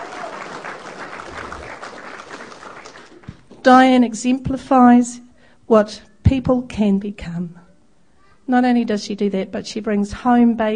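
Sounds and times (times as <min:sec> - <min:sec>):
audience applause: 0:00.0 - 0:03.6
speech: 0:03.6 - 0:07.6, 0:08.5 - 0:10.7.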